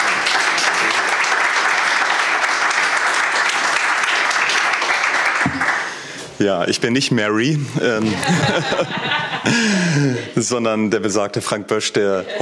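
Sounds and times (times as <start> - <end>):
audience applause: 0.0 - 6.1
speech: 6.4 - 12.4
laughter: 7.5 - 10.5, 12.0 - 12.4.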